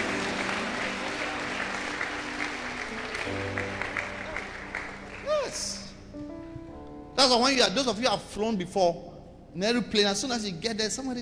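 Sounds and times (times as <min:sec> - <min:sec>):
audience applause: 0:00.0 - 0:05.7
speech: 0:07.2 - 0:11.2.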